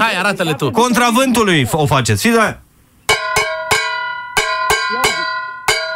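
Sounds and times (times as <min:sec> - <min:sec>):
speech: 0:00.1 - 0:02.6
metal pot being beaten rhythmically: 0:03.1 - 0:05.9.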